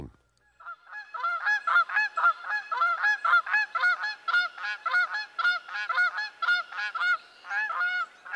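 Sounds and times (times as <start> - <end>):
red-winged blackbird calls: 0.4 - 8.3.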